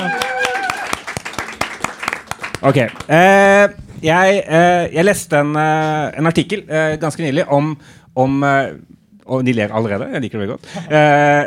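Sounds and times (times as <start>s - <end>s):
audience applause: 0.0s - 3.1s
speech: 2.6s - 11.4s.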